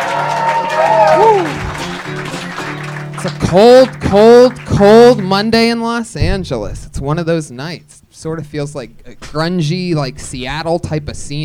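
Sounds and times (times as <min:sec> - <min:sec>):
whoops and shouted voices: 0:00.0 - 0:01.6
live audience applauding at the start of a show in Los Angeles: 0:00.0 - 0:05.5
speech: 0:03.2 - 0:11.4.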